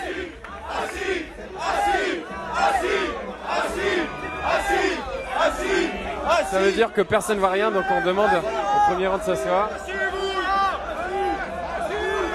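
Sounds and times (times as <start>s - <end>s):
audience clamor and shouting from a crowd at a live event: 0.0s - 12.3s
speech: 6.5s - 10.0s.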